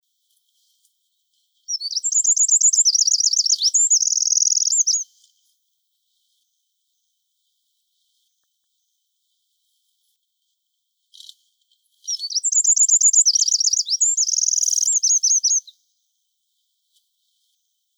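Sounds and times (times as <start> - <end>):
Eurasian wren song: 1.7 - 5.1, 12.0 - 15.8.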